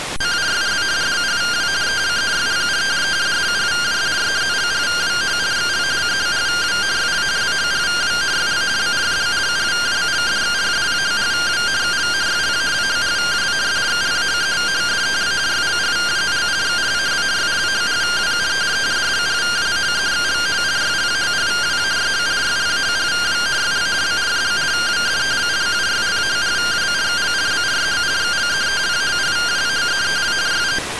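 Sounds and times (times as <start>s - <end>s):
received RTTY radioteletype signal: 0.2s - 30.8s.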